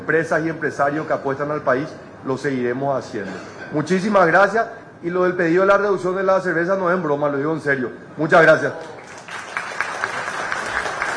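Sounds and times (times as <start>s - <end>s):
speech: 0.1s - 9.0s
group applauding the president of the Republic at a radio event: 8.8s - 11.1s.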